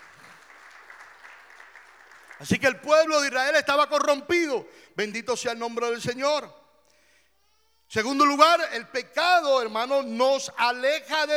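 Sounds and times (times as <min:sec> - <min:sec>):
audience applauding: 0:00.0 - 0:03.1
speech: 0:02.4 - 0:06.6, 0:07.9 - 0:11.3.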